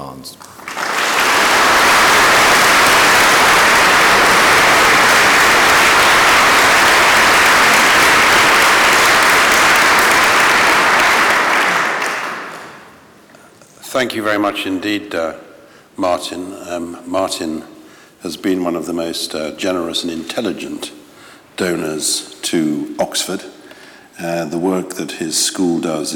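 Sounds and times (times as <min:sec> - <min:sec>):
speech: 0:00.0 - 0:00.6, 0:14.0 - 0:21.0, 0:21.6 - 0:23.6, 0:24.2 - 0:26.1
audience applause welcoming a university chancellor at an Oxford talk: 0:00.4 - 0:13.0.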